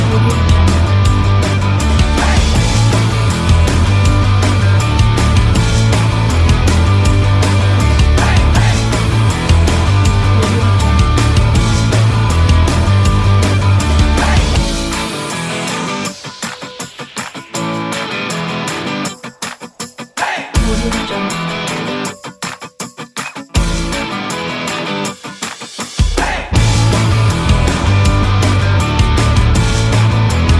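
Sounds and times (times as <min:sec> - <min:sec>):
positive driving rock music: 0:00.0 - 0:30.5.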